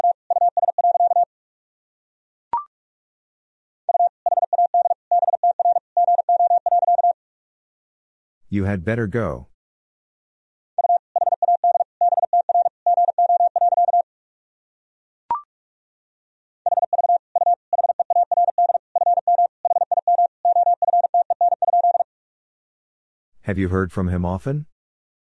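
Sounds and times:
Morse code tones at 45 words per minute: 0.0 - 1.3, 3.9 - 7.2, 10.8 - 14.0, 16.7 - 22.1
speech: 8.5 - 9.5, 23.5 - 24.7.

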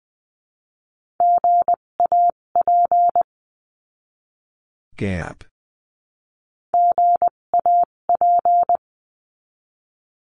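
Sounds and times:
Morse code tones spelling a word: 1.2 - 3.3, 6.8 - 8.8
speech: 5.0 - 5.5.

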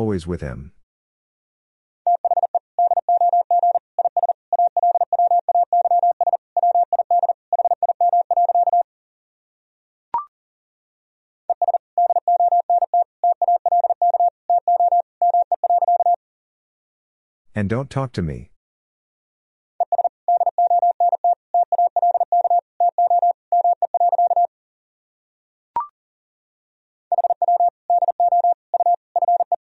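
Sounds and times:
speech: 0.0 - 0.8, 17.6 - 18.5
Morse code tones at 40 wpm: 2.1 - 8.8, 11.5 - 16.2, 19.8 - 24.5, 27.1 - 29.6.

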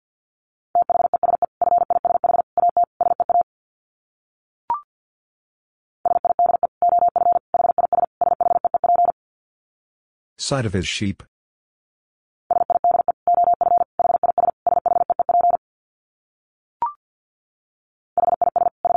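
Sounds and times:
Morse code dits at 50 wpm: 0.8 - 3.4, 6.1 - 9.2, 12.5 - 15.6, 18.2 - 18.9
speech: 10.4 - 11.3.

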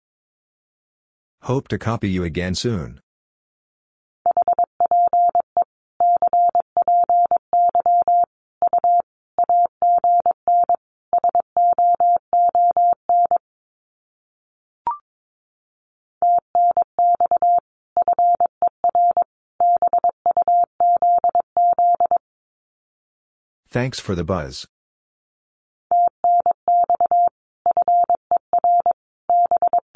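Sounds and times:
speech: 1.5 - 3.0, 23.7 - 24.7
Morse code practice tones: 4.3 - 13.4, 16.2 - 22.2, 26.0 - 29.9.

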